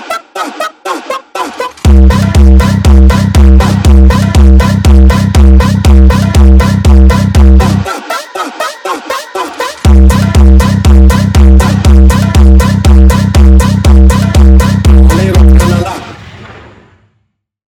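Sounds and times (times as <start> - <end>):
boosted funk bass: 1.8 - 7.9, 9.8 - 15.9.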